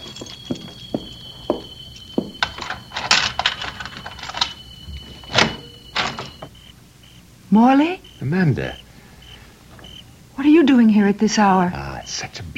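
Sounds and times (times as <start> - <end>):
keys jingling and scraping in a lock: 0.0 - 6.4
faint steady high whine: 0.0 - 12.5
speech: 7.5 - 8.8, 10.4 - 12.5.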